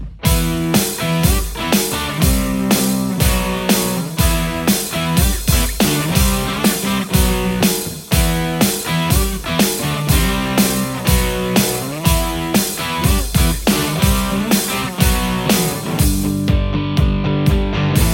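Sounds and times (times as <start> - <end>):
Stratocaster electric guitar: 0.2 - 18.1.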